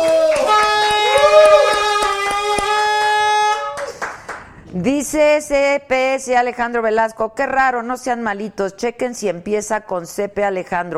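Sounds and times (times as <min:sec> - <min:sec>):
applause: 0:00.0 - 0:04.6
horn blaring: 0:00.3 - 0:03.9
speech: 0:04.8 - 0:10.9.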